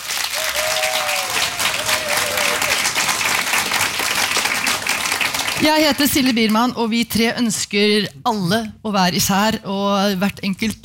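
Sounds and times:
audience applause: 0.0s - 6.0s
speech: 5.6s - 10.8s.

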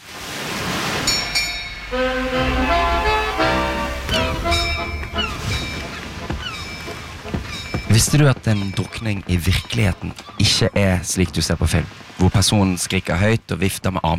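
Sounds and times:
musical jingle: 1.1s - 6.0s
speech: 8.0s - 14.1s.

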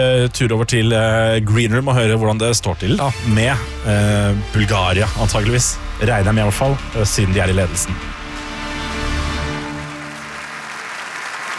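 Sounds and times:
speech: 0.0s - 8.2s
fake applause sound effect: 7.2s - 11.5s.

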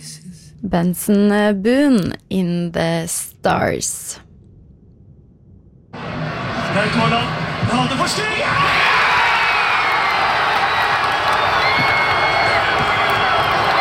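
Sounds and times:
speech: 0.6s - 4.2s, 6.8s - 9.0s
large crowd cheering after a football goal: 6.0s - 13.7s.

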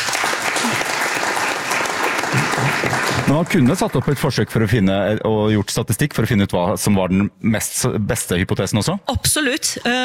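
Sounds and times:
applause sound effect: 0.0s - 4.6s
speech: 2.8s - 10.0s.

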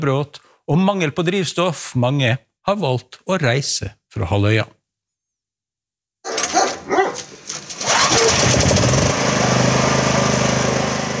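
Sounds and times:
speech: 0.0s - 4.8s
generator running outside a house in Sevastopol: 6.5s - 11.1s.

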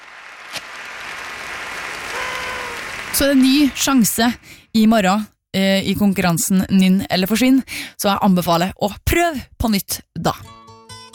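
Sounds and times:
crowd applause: 0.0s - 4.6s
speech: 3.1s - 10.5s.

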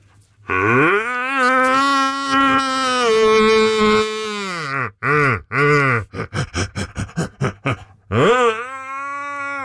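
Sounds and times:
man imitating a red deer's rutting roar: 0.5s - 6.1s, 8.1s - 9.6s.

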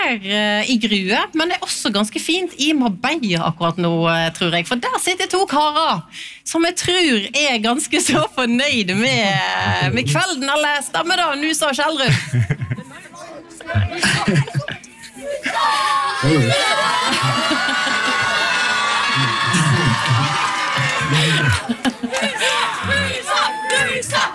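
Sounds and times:
speech: 0.1s - 12.7s, 13.6s - 14.7s, 15.6s - 17.8s
laughter: 9.0s - 10.2s, 12.1s - 24.3s
crowd applause and cheering: 15.6s - 24.3s.

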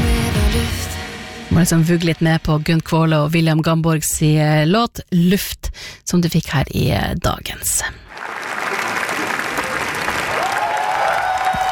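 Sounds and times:
speech: 1.6s - 8.4s
audience clapping in Cannes after a film screening: 8.1s - 11.6s.

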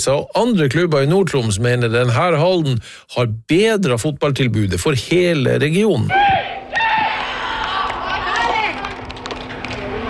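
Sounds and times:
speech: 0.0s - 6.5s
youth football teammates shouting and cheering a goal: 6.1s - 10.0s.

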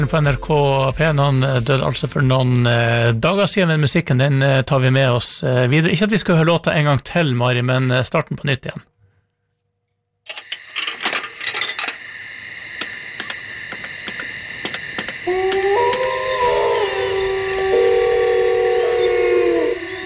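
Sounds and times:
speech: 0.0s - 8.9s
wolf howl: 15.0s - 20.0s.

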